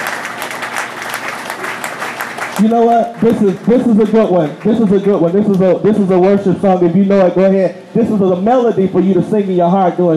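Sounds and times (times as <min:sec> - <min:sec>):
audience hand clapping: 0:00.0 - 0:06.1
speech: 0:02.6 - 0:10.1.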